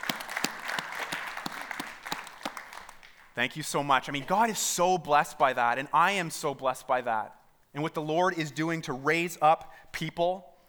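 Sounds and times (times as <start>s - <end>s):
crowd round of applause: 0.0s - 3.4s
speech: 3.4s - 10.5s.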